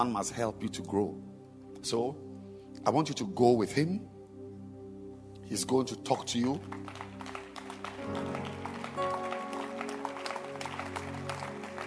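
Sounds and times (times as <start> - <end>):
speech: 0.0 - 4.1, 5.5 - 7.1
audience clapping in a steady rhythm: 6.5 - 11.8.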